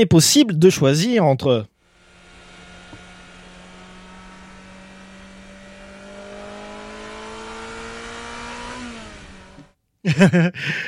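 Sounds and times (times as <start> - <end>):
speech: 0.0 - 1.7, 10.0 - 10.8
synthetic electric-car engine sound: 1.8 - 9.8
laughter: 10.0 - 10.8.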